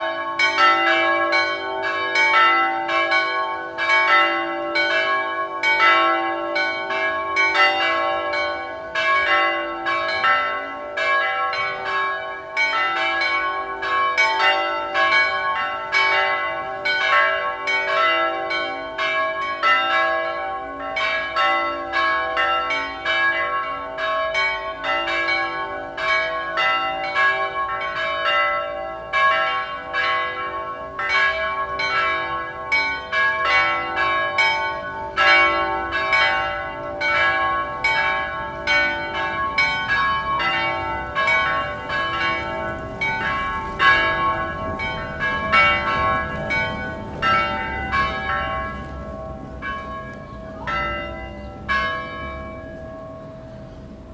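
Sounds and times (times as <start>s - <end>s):
church bells ringing: 0.0s - 54.1s
car passing: 37.4s - 54.1s.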